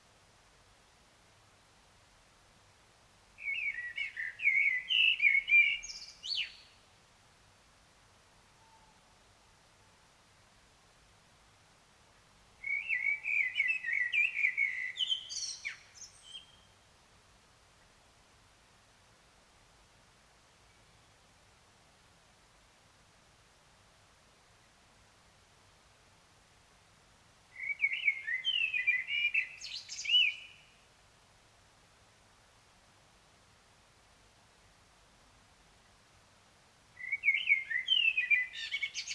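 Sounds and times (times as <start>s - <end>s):
common blackbird song: 3.4s - 6.6s, 12.6s - 16.7s, 27.6s - 30.7s, 37.0s - 39.1s.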